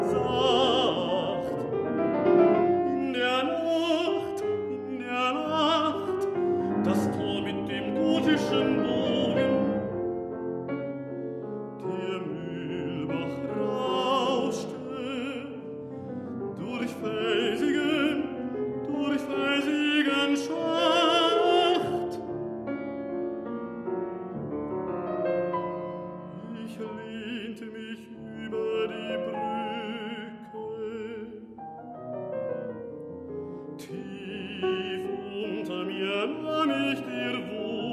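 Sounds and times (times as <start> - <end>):
baritone singing night songs: 0.0 - 9.9, 11.8 - 22.2, 25.9 - 31.7, 33.8 - 37.9
piano accompaniment: 0.0 - 37.9.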